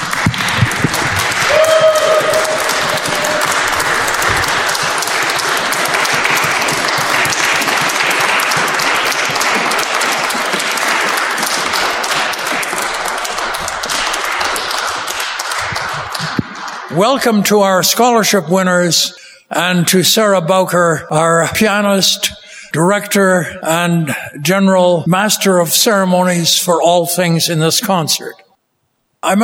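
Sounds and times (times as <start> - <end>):
loud audience applause: 0.0 - 17.8
speech: 17.0 - 28.4, 29.2 - 29.4.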